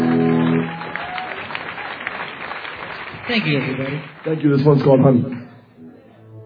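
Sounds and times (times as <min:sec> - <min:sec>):
audience applause welcoming a band: 0:00.0 - 0:04.7
speech: 0:03.3 - 0:05.5.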